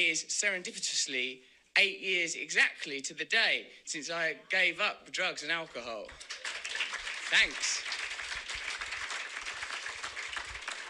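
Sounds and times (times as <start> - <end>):
speech: 0.0 - 6.4, 7.3 - 8.0
crowd applause: 6.1 - 10.8.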